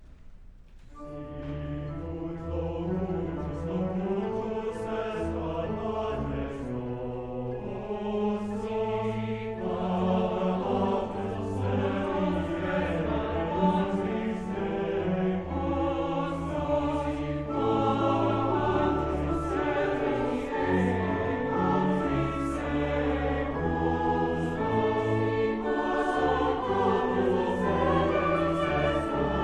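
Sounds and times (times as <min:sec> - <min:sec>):
concert choir singing: 0:01.0 - 0:29.4.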